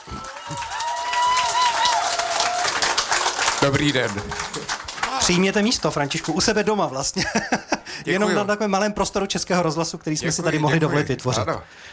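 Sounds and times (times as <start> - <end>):
audience applause: 0.0 - 6.8
speech: 0.5 - 0.8, 3.6 - 4.6, 5.3 - 11.9
laughter: 7.1 - 8.3.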